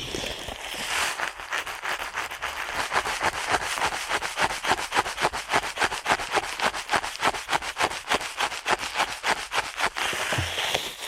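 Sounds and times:
rapid ear cleaning scratching strokes: 0:00.0 - 0:11.0.

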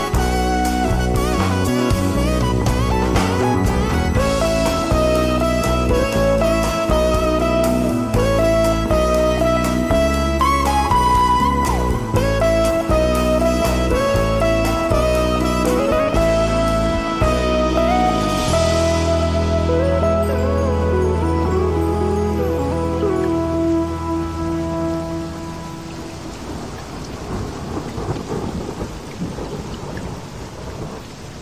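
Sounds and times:
steady rain hiss: 0:00.0 - 0:19.8, 0:21.4 - 0:31.4
smooth jazz with pulsing beat, mellow bass line and melody: 0:00.0 - 0:26.1.

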